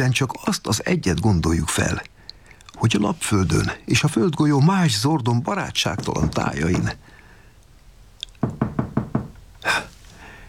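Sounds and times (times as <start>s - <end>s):
speech: 0.0s - 2.1s, 2.8s - 7.1s
pounding on a door: 6.0s - 7.0s, 8.4s - 9.4s.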